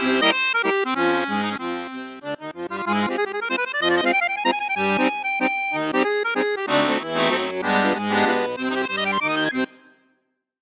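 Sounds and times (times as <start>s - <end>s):
Coope Armoniche Diamante 805 accordion on flute register: 0.0s - 10.0s.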